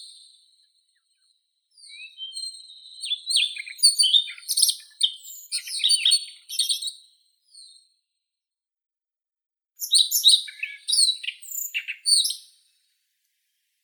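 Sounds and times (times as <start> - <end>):
Siberian rubythroat Luscinia calliope singing: 0.0 - 7.8, 9.8 - 12.6.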